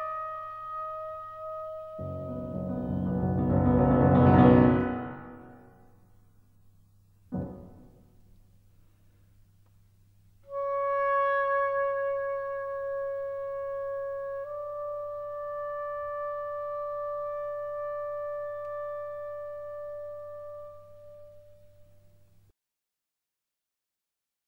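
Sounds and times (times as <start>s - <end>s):
oboe and piano: 0.0s - 5.7s, 10.4s - 22.1s.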